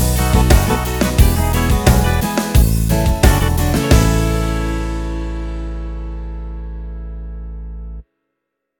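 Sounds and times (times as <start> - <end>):
music beat: 0.0 - 4.8.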